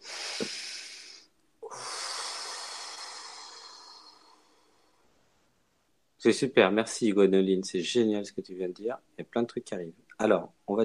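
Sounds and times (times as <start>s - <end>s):
deep breath inhale and exhale: 0.0s - 5.2s
speech: 6.2s - 10.8s.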